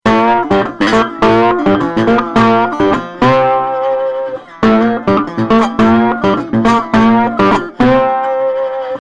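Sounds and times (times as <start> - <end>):
slide guitar: 0.0 - 9.0.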